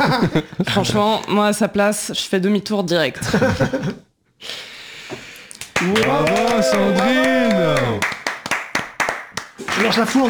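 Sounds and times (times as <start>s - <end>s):
speech: 0.1s - 5.2s, 5.8s - 8.1s, 9.8s - 10.2s
sharp claps: 5.6s - 10.2s
crowd cheering and whooping: 5.8s - 8.0s
crowd applause: 5.8s - 10.2s.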